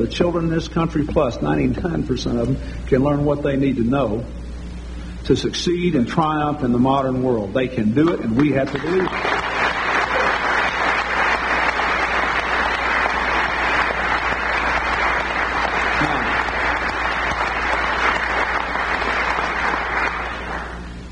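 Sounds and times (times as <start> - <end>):
speech: 0.0 - 4.4, 5.3 - 9.6
audience clapping: 8.0 - 20.9.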